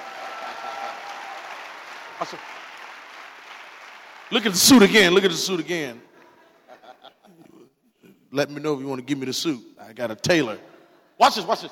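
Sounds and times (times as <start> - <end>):
audience applause: 0.0 - 4.9
speech: 2.2 - 2.6, 4.3 - 6.1, 8.3 - 11.7.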